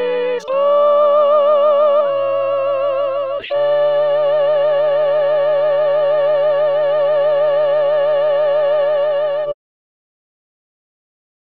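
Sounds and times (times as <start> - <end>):
tenors singing: 0.0 - 9.6.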